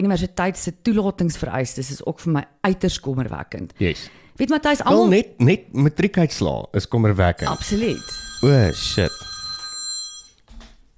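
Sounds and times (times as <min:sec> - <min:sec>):
speech: 0:00.0 - 0:09.3
telephone ringing with a high electronic tone: 0:07.4 - 0:10.5.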